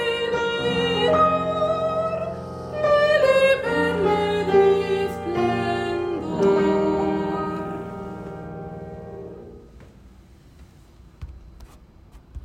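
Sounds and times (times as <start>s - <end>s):
piano and voice: 0.0s - 9.7s.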